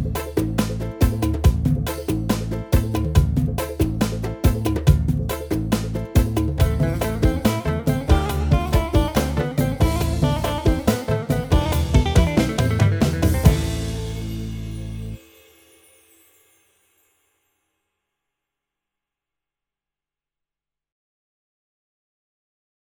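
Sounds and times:
Yamaha PSR-A5000 keyboard rumba style: 0.0s - 15.4s.

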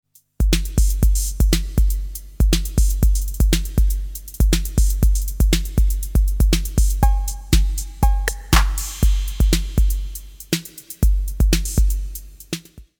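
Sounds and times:
808 drum machine back wall echo: 0.6s - 12.7s.

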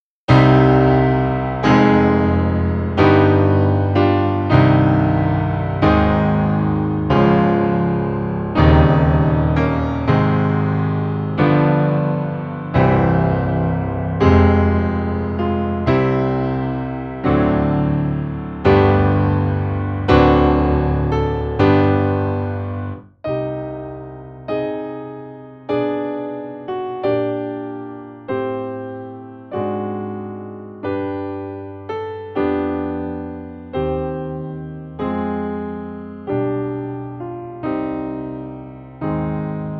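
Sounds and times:
Nord Grand White Grand piano: 0.3s - 39.7s.

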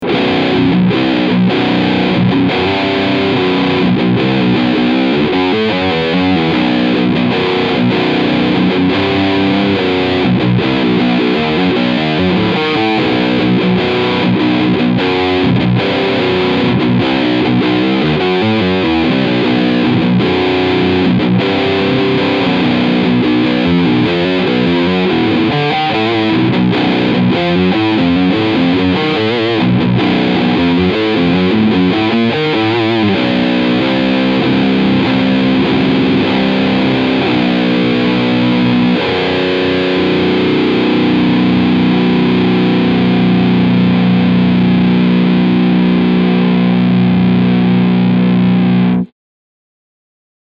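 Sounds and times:
seven-string electric guitar riff on bridge pickup: 0.0s - 49.1s.

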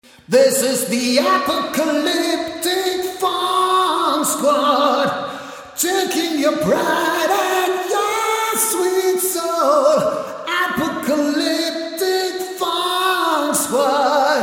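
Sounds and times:
vocal through Radial Engineering Vocoloco reverb: 0.0s - 14.4s.

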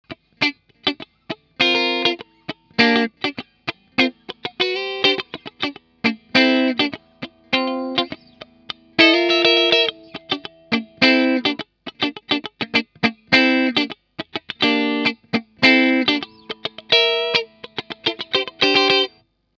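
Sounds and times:
Harley Benton TE 70 electric guitar middle pickup clean: 0.1s - 19.2s.

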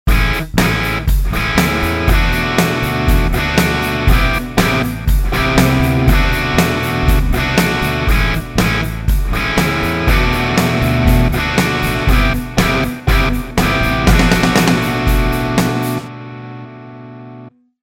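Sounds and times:
distorted guitar chords: 0.0s - 17.6s.

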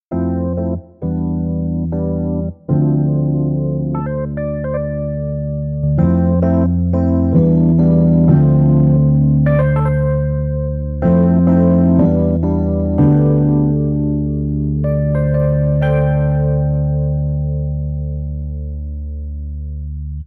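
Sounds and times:
blues music: 0.1s - 20.2s.

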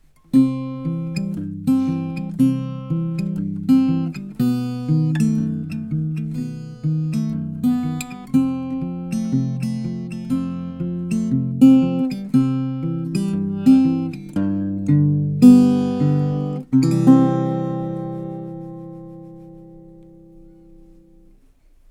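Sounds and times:
Harley Benton TravelMate guitar picking recorded by microphone: 0.0s - 21.5s.

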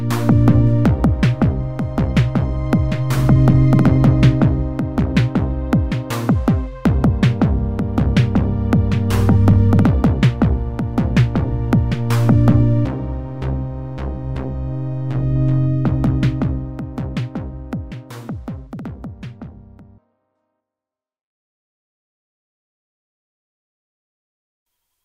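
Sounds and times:
M8 Tracker example song: 0.0s - 18.4s.

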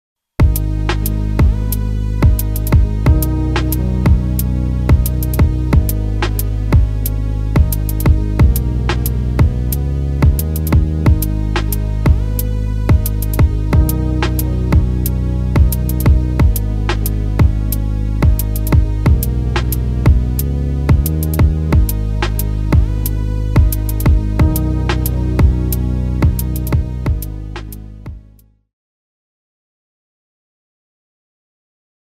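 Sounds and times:
M8 Tracker example song: 0.4s - 28.5s.

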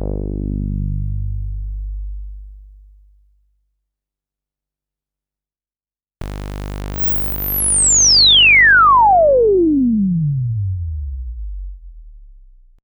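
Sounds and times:
sawtooth synthesizer with resonance: 0.1s - 2.8s, 7.1s - 12.8s.

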